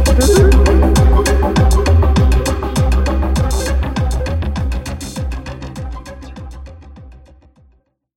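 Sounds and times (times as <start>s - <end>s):
trance chant: 0.0s - 6.3s.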